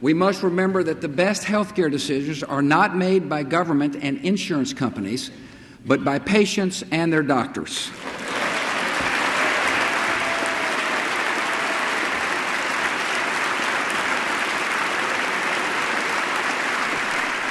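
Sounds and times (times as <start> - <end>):
speech: 0.0 - 8.4
standing ovation from Congress: 7.9 - 17.4.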